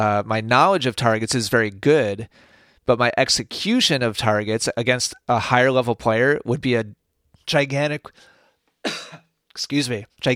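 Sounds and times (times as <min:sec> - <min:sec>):
speech: 0:00.0 - 0:10.3
rough throat clearing and coughing: 0:08.8 - 0:09.4.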